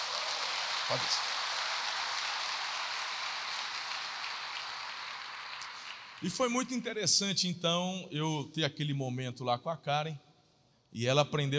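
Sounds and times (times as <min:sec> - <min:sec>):
crowd applauding: 0:00.0 - 0:06.9
speech: 0:00.9 - 0:01.3, 0:06.2 - 0:10.3, 0:10.9 - 0:11.5.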